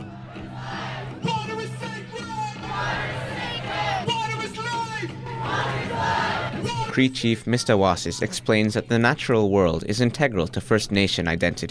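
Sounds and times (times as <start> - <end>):
large rallying crowd shouting and yelling together outside court: 0.0 - 8.8
speech: 7.0 - 11.7.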